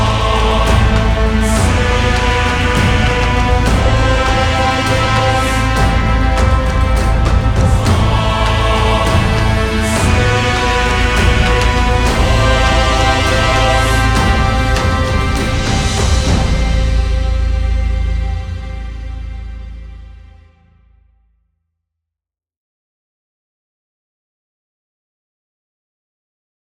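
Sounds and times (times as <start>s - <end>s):
orchestral action music: 0.0s - 20.5s.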